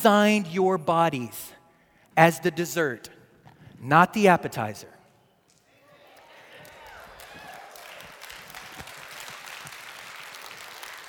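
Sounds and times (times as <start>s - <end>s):
speech: 0.0s - 1.6s, 2.2s - 3.2s, 3.8s - 4.9s
audience cheering and applause: 6.0s - 11.0s.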